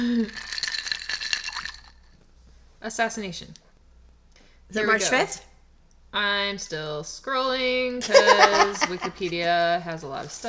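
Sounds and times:
speech: 0:00.0 - 0:00.5, 0:02.8 - 0:03.6, 0:04.7 - 0:05.5, 0:06.1 - 0:10.4
ice clinking in a glass: 0:00.2 - 0:02.0
laughter: 0:08.0 - 0:09.5.

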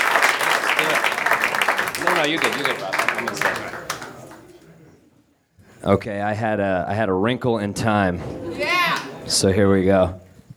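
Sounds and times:
audience applause: 0:00.0 - 0:04.6
speech: 0:02.2 - 0:03.5, 0:05.8 - 0:08.4, 0:09.3 - 0:10.2.

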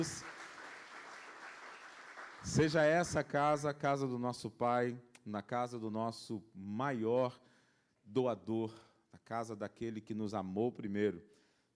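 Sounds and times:
speech: 0:00.0 - 0:00.4, 0:02.4 - 0:11.4
audience applauding: 0:00.0 - 0:03.0.

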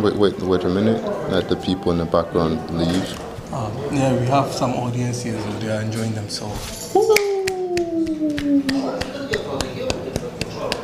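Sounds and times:
speech: 0:00.0 - 0:07.1, 0:08.1 - 0:09.7
hand clapping: 0:07.0 - 0:10.8.

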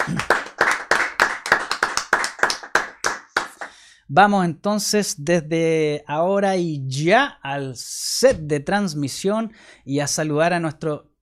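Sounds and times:
applause: 0:00.0 - 0:03.8
speech: 0:04.1 - 0:11.1.

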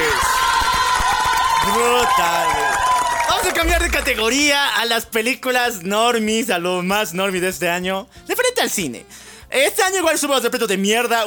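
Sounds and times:
applause and cheering: 0:00.0 - 0:04.5
speech: 0:04.0 - 0:11.2.

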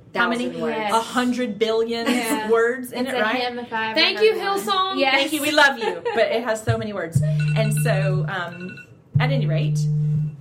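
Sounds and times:
speech: 0:00.1 - 0:10.0
buzzy electronic mobile phone ringtone: 0:07.2 - 0:10.3.

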